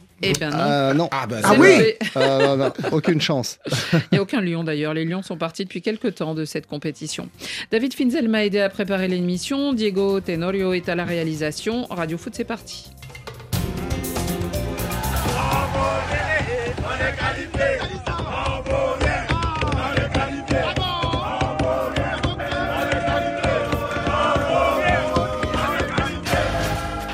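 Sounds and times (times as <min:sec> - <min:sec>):
speech: 0:00.2 - 0:13.2
laughter: 0:00.7 - 0:04.4
stadium crowd roaring and chanting demanding a goal: 0:14.6 - 0:27.1.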